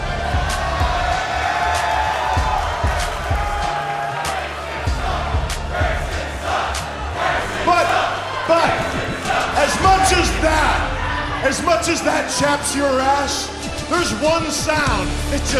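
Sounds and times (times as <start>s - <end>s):
wrestling crowd chanting at Grayson Waller: 0.0s - 14.4s
speech: 11.5s - 15.5s.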